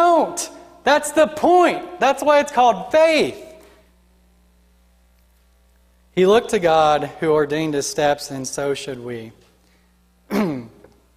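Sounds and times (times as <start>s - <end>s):
speech: 0.2s - 3.4s, 6.2s - 9.4s, 10.3s - 10.8s
throat clearing: 10.3s - 10.9s.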